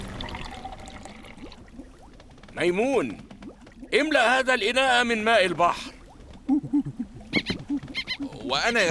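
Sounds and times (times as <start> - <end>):
speech: 2.6 - 3.3, 3.9 - 5.9, 8.5 - 8.8
monkey chattering with short squeaky calls: 6.6 - 8.5.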